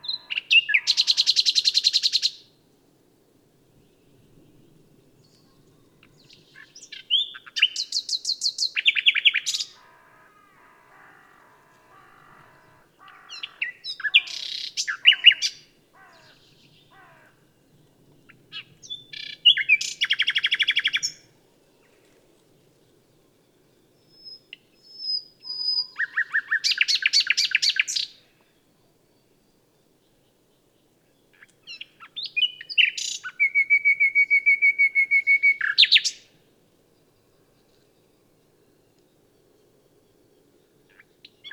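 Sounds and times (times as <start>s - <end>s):
common nightingale singing: 0.0s - 2.6s, 5.2s - 9.9s, 11.8s - 21.3s, 23.8s - 28.3s, 29.1s - 36.3s, 40.9s - 41.5s.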